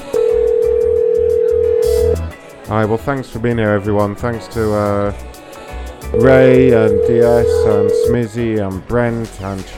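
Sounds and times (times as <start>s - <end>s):
telephone dial tone: 0.2s - 2.2s, 6.2s - 8.2s
speech: 2.7s - 5.4s, 6.1s - 9.7s.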